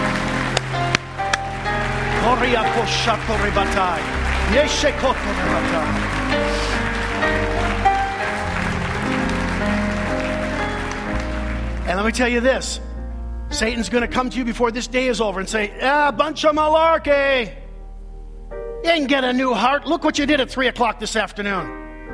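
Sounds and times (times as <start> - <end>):
audience clapping: 0.0 - 12.6
speech: 2.3 - 7.6, 11.9 - 12.9, 13.6 - 17.6, 18.8 - 21.8.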